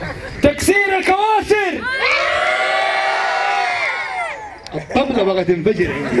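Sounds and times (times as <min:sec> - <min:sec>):
laughter: 0:00.0 - 0:00.5, 0:04.6 - 0:06.1
crowd cheering and whooping at a live lecture event: 0:01.8 - 0:04.8
speech: 0:05.0 - 0:06.1.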